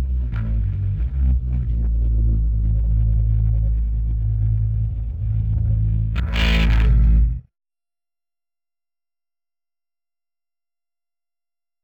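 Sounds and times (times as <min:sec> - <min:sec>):
bass: 0:00.0 - 0:07.5.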